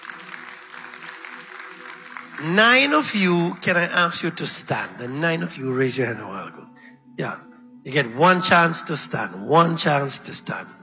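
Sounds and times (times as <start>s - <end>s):
faint applause from a congregation at an Adventist church gathering: 0.0s - 4.3s
speech: 2.4s - 10.8s.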